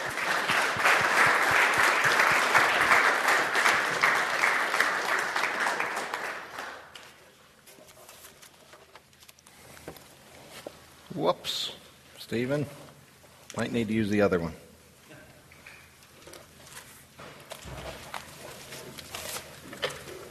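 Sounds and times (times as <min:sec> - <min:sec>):
audience applause welcoming a guest speaker: 0:00.0 - 0:07.2
speech: 0:12.3 - 0:12.8, 0:13.6 - 0:14.6.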